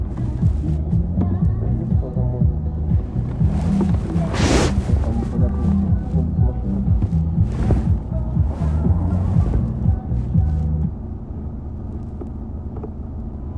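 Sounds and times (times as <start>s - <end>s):
low throbbing hum: 0.0s - 13.5s
FM radio static hiss: 3.5s - 5.9s.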